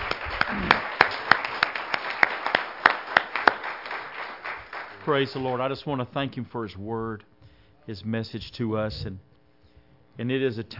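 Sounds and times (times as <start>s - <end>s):
audience clapping hands in praise: 0.0s - 5.8s
speech: 5.0s - 7.3s, 7.9s - 9.3s, 10.2s - 10.7s.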